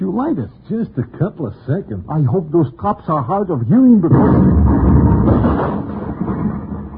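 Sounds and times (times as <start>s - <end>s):
speech: 0.0s - 5.8s
bomb blast: 4.0s - 6.9s.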